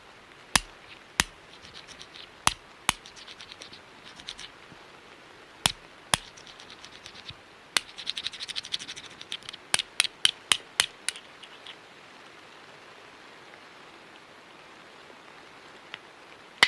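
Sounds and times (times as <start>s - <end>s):
flints of various sizes striking to start a fire in a cave: 0.6s - 4.6s, 5.7s - 11.8s.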